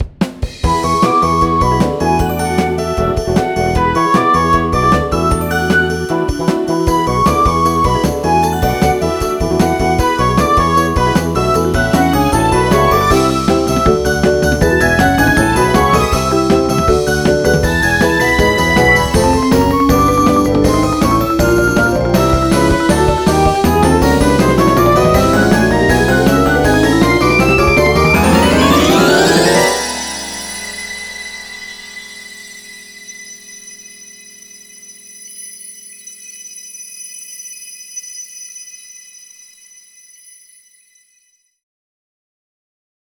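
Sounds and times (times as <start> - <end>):
up-tempo battle music: 0.6 - 32.0.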